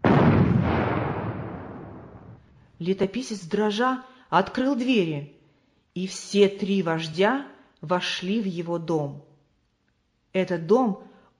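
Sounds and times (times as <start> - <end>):
gunshot: 0.0 - 2.4
speech: 2.8 - 5.4, 6.0 - 9.3, 10.3 - 11.1.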